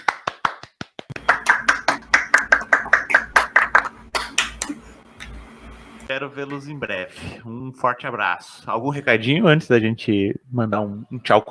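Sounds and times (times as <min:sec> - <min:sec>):
group clapping hands: 0:00.0 - 0:05.4
speech: 0:06.2 - 0:11.4.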